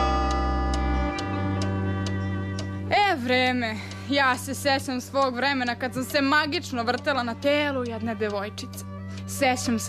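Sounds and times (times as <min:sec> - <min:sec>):
old broken clock ticking: 0:00.0 - 0:09.8
sustained musical drone: 0:00.0 - 0:09.8
speech: 0:03.2 - 0:09.8.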